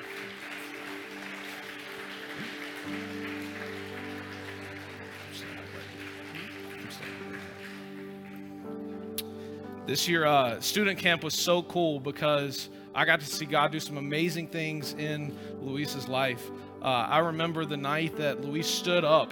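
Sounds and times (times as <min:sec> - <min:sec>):
church audience applause welcoming a couple entering a baptism pool: 0:00.0 - 0:08.8
speech: 0:02.9 - 0:03.3, 0:09.9 - 0:19.3.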